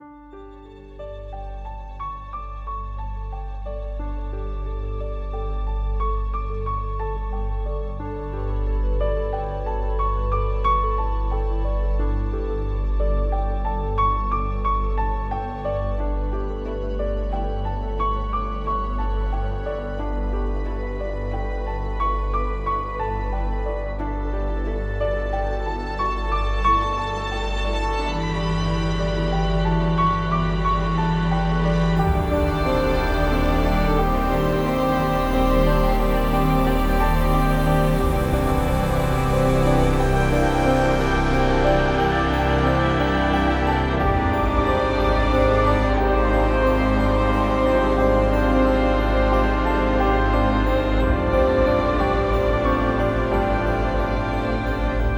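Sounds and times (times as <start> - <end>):
ambient music: 0.0 - 55.1.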